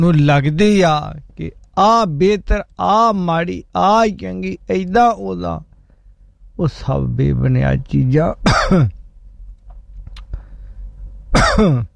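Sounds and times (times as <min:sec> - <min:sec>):
speech: 0:00.0 - 0:05.7, 0:06.6 - 0:09.0, 0:11.3 - 0:11.9
person coughing: 0:08.4 - 0:09.0, 0:11.3 - 0:11.9
faint clicks: 0:09.5 - 0:10.4.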